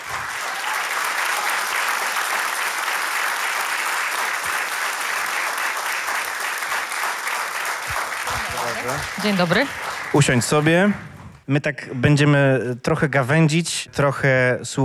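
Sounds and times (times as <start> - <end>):
audience applause: 0.0 - 11.2
speech: 8.8 - 14.8.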